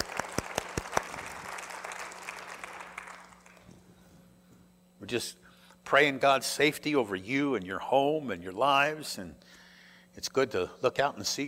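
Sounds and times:
church congregation applauding: 0:00.0 - 0:03.7
speech: 0:05.1 - 0:09.6, 0:10.2 - 0:11.4.

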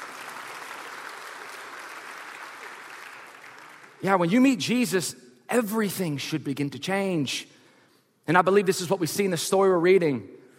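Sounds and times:
audience clapping: 0:00.0 - 0:04.5
speech: 0:04.0 - 0:07.6, 0:08.2 - 0:10.4.

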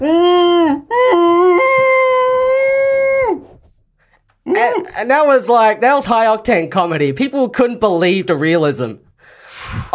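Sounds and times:
speech: 0:00.0 - 0:00.3, 0:05.0 - 0:09.9
voice imitating screams of a tortured person: 0:00.0 - 0:03.5.

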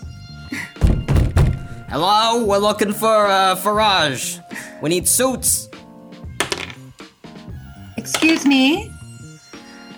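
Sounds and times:
speech: 0:01.9 - 0:05.7, 0:08.2 - 0:08.9
heavy knocking on a door: 0:06.4 - 0:06.8.

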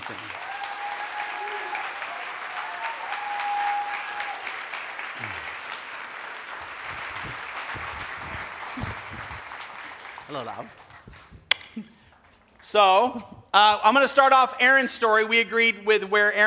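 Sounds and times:
audience applause welcoming a speaker onto the stage: 0:00.0 - 0:11.3
speech: 0:00.1 - 0:00.4, 0:10.3 - 0:10.8, 0:12.7 - 0:16.4.

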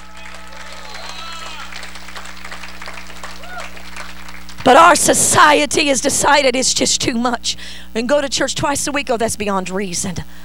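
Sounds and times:
audience hand clapping: 0:00.0 - 0:05.3
speech: 0:04.7 - 0:10.4.

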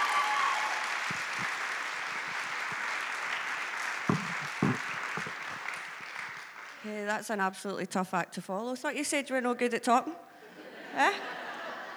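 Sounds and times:
audience applause for a speaker coming up to the front: 0:00.0 - 0:06.9
brief thumps: 0:04.1 - 0:05.6
speech: 0:06.9 - 0:10.3, 0:10.9 - 0:11.4
laughter: 0:10.5 - 0:11.9.

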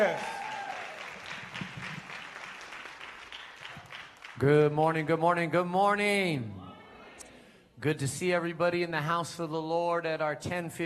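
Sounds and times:
speech: 0:00.0 - 0:00.3, 0:04.4 - 0:06.6, 0:07.8 - 0:10.8
audience clapping hands: 0:00.0 - 0:05.1.

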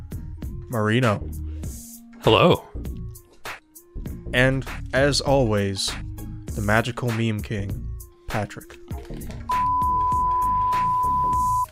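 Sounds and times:
speech: 0:00.7 - 0:03.0, 0:04.3 - 0:09.4
high-pitched censor bleep over swearing: 0:09.5 - 0:11.7.

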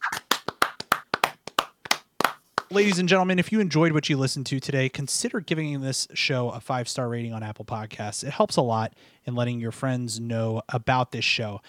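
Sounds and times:
hands clapping: 0:00.0 - 0:03.2
speech: 0:02.7 - 0:11.6.

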